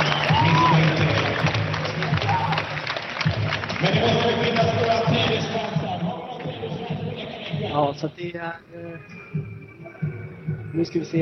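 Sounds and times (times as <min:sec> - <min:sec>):
sports crowd in arena chanting and shouting: 0:00.0 - 0:08.2
speech: 0:07.8 - 0:09.5, 0:10.8 - 0:11.1.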